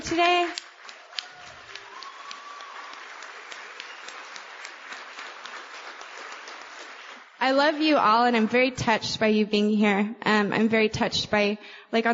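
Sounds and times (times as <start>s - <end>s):
speech: 0.1s - 0.6s, 7.4s - 12.1s
audience applause: 0.3s - 7.4s.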